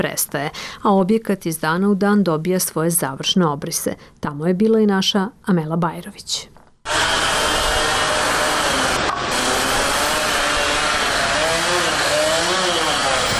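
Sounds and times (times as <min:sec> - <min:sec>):
speech: 0:00.0 - 0:07.2
construction mixers: 0:06.9 - 0:13.3
drills: 0:06.9 - 0:13.3.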